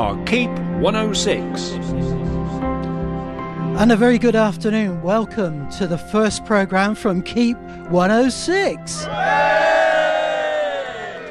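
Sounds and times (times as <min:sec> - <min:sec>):
speech: 0:00.0 - 0:02.2, 0:03.8 - 0:09.9
crowd cheering and whooping: 0:09.0 - 0:11.3.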